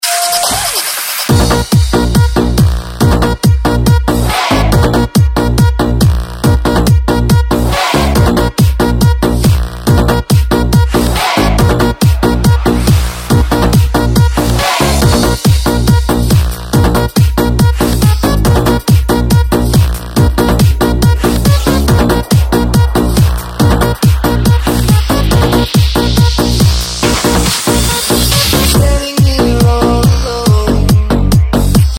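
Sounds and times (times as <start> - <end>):
DJ dance music: 0.0 - 31.9.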